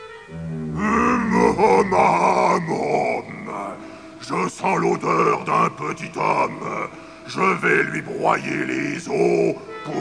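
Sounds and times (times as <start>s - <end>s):
man's voice roaring imitating a giant's bellow: 0.5s - 3.3s
speech: 4.3s - 10.0s.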